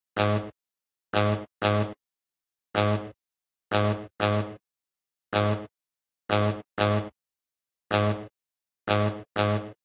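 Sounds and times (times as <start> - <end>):
saxophone: 0.2 - 0.6, 1.2 - 2.0, 2.8 - 4.6, 5.3 - 5.7, 6.3 - 7.2, 7.9 - 8.3, 8.9 - 9.8.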